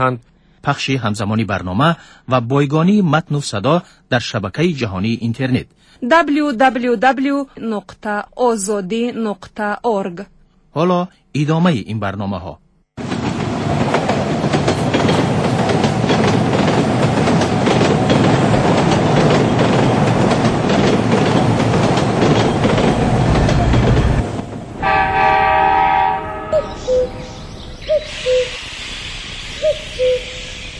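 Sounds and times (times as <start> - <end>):
speech: 0.0 - 12.6
trains passing with rumble and rattle: 13.0 - 30.7
short hooting bird calls: 26.5 - 30.7.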